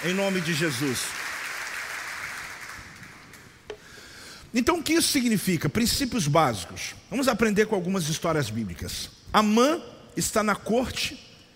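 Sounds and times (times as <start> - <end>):
speech: 0.0 - 1.3, 4.5 - 11.3
crowd applauding: 0.0 - 3.4.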